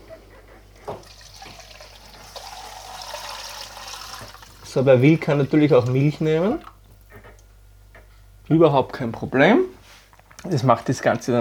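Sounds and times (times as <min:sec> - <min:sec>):
water poured into a container holding a cooking mixture with eggs: 0:00.9 - 0:06.8
speech: 0:04.7 - 0:06.7, 0:08.5 - 0:09.7, 0:10.4 - 0:11.3.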